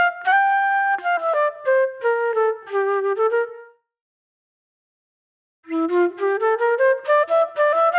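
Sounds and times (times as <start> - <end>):
reflective flute music: 0.0 - 3.9, 5.7 - 7.9.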